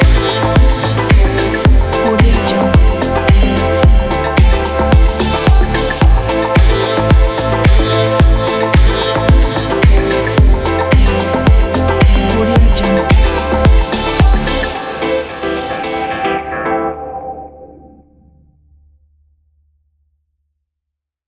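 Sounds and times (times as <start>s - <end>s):
house music groove: 0.0s - 16.6s.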